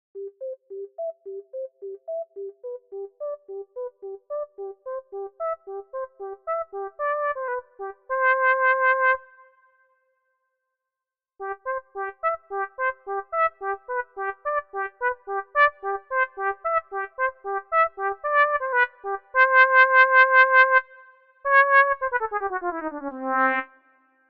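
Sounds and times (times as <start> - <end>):
trumpet: 5.4 - 9.8, 11.4 - 24.2.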